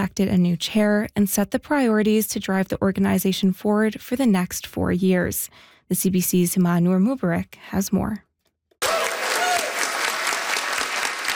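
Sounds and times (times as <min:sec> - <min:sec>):
speech: 0:00.0 - 0:08.3
round of applause at Inuit Circumpolar Council assembly: 0:08.8 - 0:11.3.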